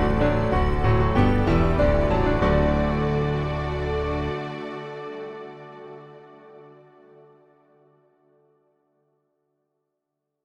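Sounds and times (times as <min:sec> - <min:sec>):
backing music: 0:00.0 - 0:06.8.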